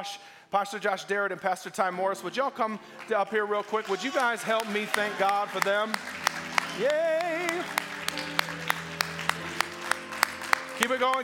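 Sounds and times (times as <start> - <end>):
speech: 0.0 - 7.2, 10.8 - 11.2
church congregation clapping for two pastors: 2.8 - 11.2.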